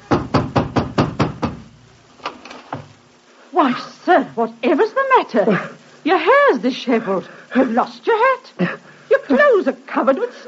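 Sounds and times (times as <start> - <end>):
pounding on a wooden door: 0.0 - 1.7
speech: 3.6 - 10.4.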